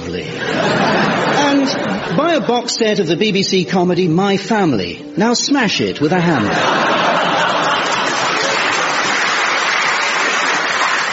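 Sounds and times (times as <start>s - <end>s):
speech: 0.1s - 0.8s, 1.6s - 6.9s
laughter: 0.3s - 2.9s, 6.3s - 11.1s
audience cheering: 6.9s - 11.1s.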